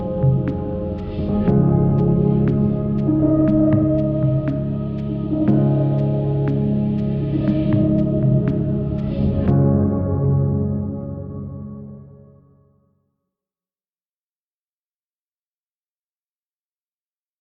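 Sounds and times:
piano house music: 0:00.0 - 0:12.4.

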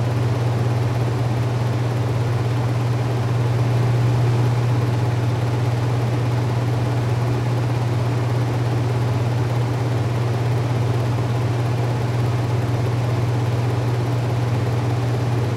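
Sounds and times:
fan running: 0:00.0 - 0:15.5.

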